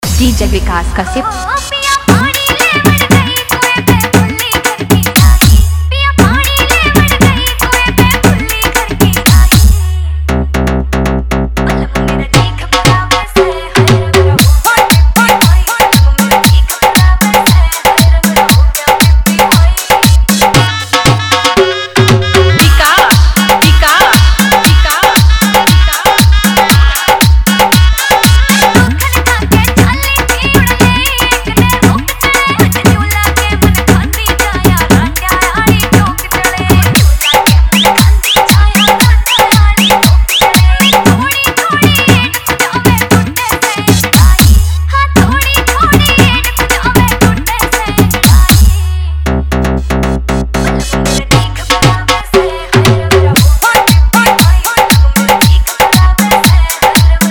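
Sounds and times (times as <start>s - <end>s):
hard dholki remix song: 0.0s - 57.2s.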